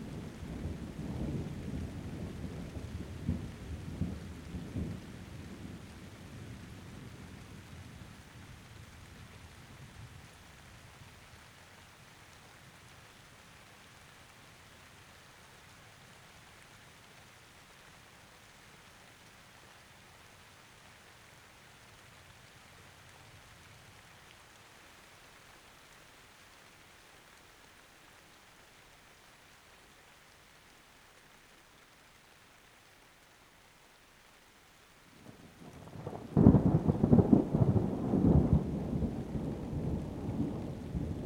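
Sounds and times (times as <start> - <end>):
rain: 0.0 - 41.2
thunder: 0.1 - 7.3, 35.2 - 41.2.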